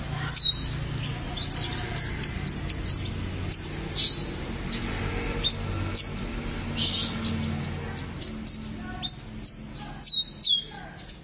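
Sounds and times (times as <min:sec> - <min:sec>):
canary singing: 0:00.0 - 0:11.2.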